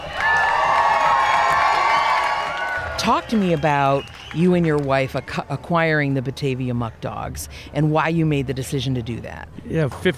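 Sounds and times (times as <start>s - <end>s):
children shouting in a baseball crowd: 0.0s - 3.0s
crowd cheering at baseball game: 0.0s - 5.5s
speech: 3.1s - 10.1s.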